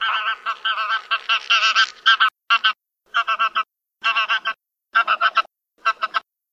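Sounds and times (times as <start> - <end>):
wild goose: 0.0 - 6.3.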